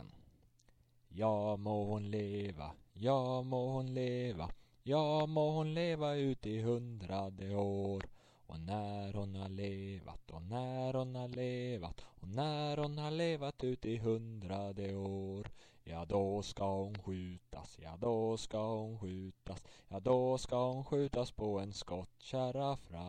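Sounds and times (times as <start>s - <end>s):
birthday song: 1.1s - 23.0s.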